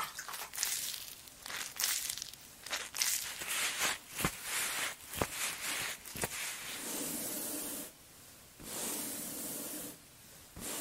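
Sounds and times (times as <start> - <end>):
hands rubbing and patting skin with a cleansing mousse: 0.2 - 7.8
soft airy hiss: 0.7 - 10.8.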